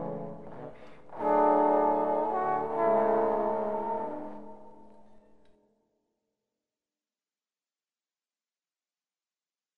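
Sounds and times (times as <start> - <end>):
wind instruments: 0.0 - 5.1
piano: 0.0 - 5.5.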